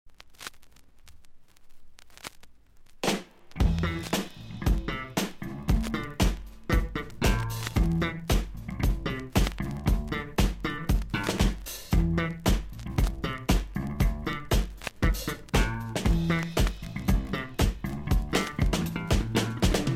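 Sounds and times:
funk music: 0:03.0 - 0:19.9.

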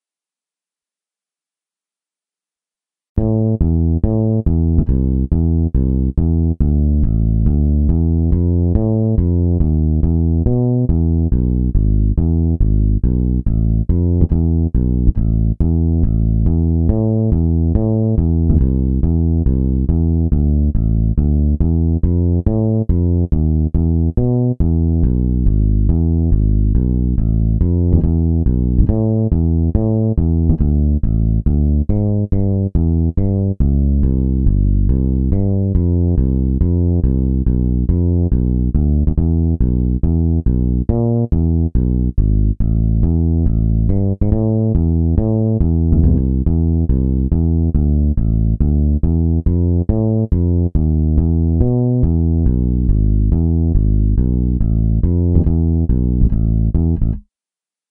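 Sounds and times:
bass alone: 0:03.2 - 0:57.3.

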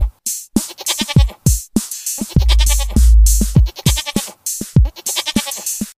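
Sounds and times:
goat singing: 0:00.6 - 0:01.5, 0:02.2 - 0:05.7.

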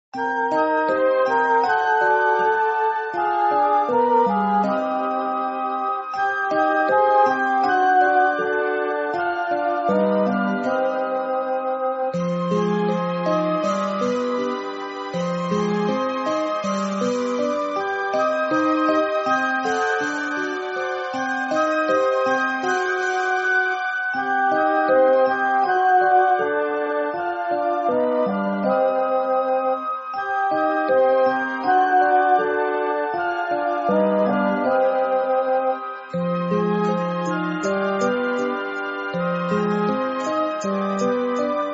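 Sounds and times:
scary mysterious Halloween music: 0:00.2 - 0:41.7.

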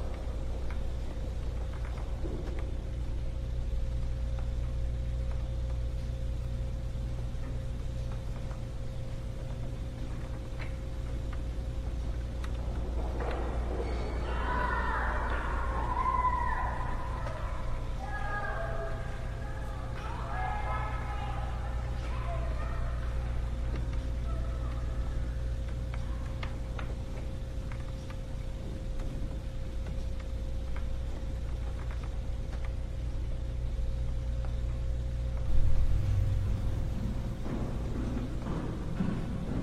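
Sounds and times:
ambience inside a house: 0:00.0 - 0:39.6.

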